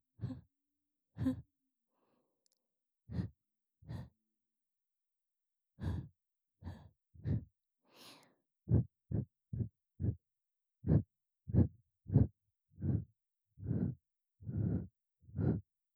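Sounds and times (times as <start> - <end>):
continuous breathing in the left ear: 0.2 - 0.5, 1.2 - 1.5, 2.5 - 4.2, 5.8 - 10.2, 10.8 - 15.7.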